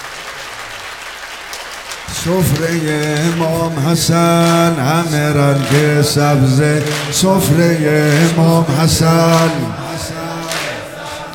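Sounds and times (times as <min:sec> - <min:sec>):
audience clapping in rhythm at a devotional gathering: 0:00.0 - 0:11.3
speech: 0:02.1 - 0:10.2.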